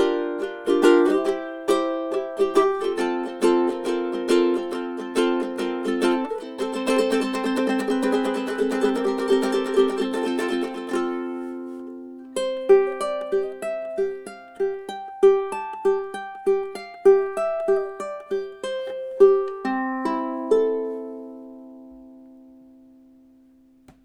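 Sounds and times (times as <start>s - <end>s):
Black Stripe Myrtle ukuleles playing: 0.0s - 23.2s.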